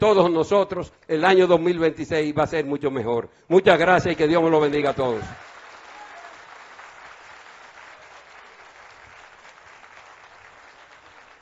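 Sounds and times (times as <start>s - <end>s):
speech: 0.0s - 5.5s
audience applause: 4.6s - 11.3s.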